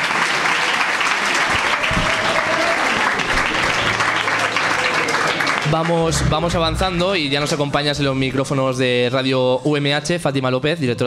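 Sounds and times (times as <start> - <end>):
audience applause: 0.0 - 7.9
speech: 5.7 - 11.0.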